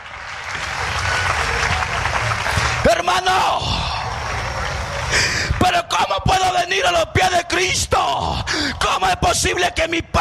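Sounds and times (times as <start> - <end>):
crowd applause: 0.0 - 5.9
speech: 2.9 - 3.8, 6.0 - 10.1.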